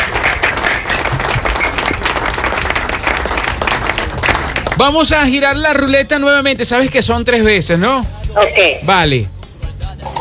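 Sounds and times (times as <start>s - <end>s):
standing applause: 0.0s - 5.5s
speech: 4.8s - 9.4s.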